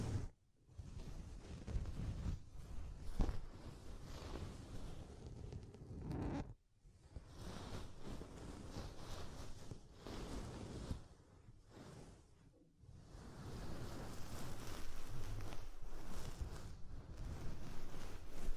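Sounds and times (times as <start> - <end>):
soft fluffy ASMR triggers rubbing and brushing over the microphone: 0.0 - 6.6, 7.2 - 18.5.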